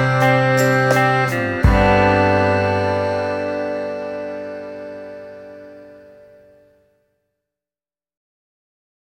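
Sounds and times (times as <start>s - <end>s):
instrumental music: 0.0s - 7.1s.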